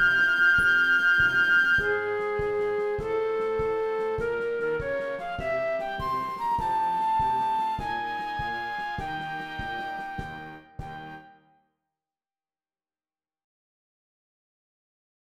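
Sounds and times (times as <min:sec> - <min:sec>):
flute: 0:00.0 - 0:11.5.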